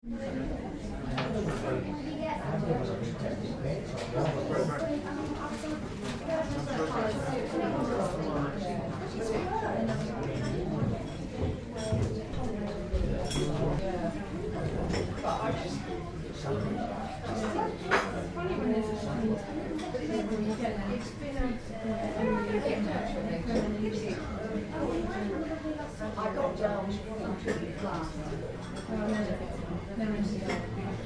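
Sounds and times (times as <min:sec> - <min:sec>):
mixed chatter in a tea room: 0:00.0 - 0:31.0.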